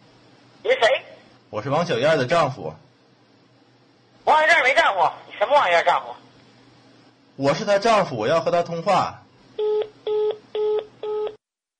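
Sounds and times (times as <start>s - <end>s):
faint hum: 0.0s - 11.4s
speech: 0.6s - 2.8s, 4.3s - 6.2s, 7.4s - 9.2s
telephone keypad tones: 9.6s - 11.4s.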